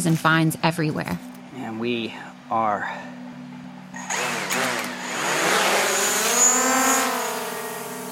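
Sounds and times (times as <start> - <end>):
speech: 0.0 - 3.2
steady low hum: 1.0 - 8.1
drone motors whining on launch: 3.4 - 8.1.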